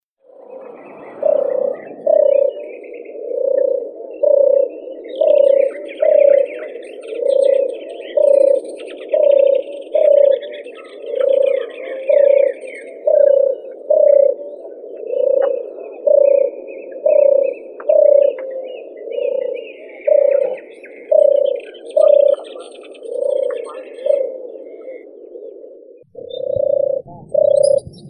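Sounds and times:
common turtle dove Streptopelia turtur: 0:00.0 - 0:28.0.

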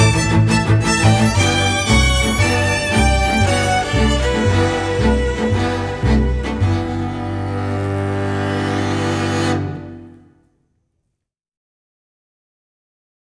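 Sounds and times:
string quartet: 0:00.0 - 0:10.4.

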